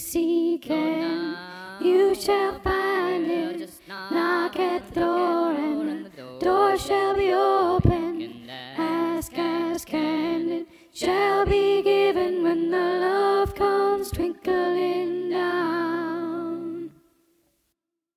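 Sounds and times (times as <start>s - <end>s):
soprano singing: 0.0s - 17.0s.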